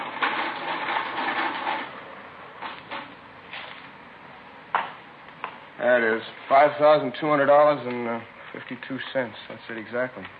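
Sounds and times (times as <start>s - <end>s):
mechanical adding machine clattering: 0.0s - 1.9s
speech: 5.8s - 10.3s.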